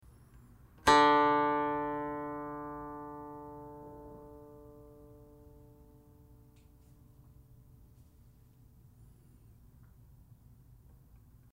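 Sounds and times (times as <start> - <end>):
guqin: 0.8 - 5.9.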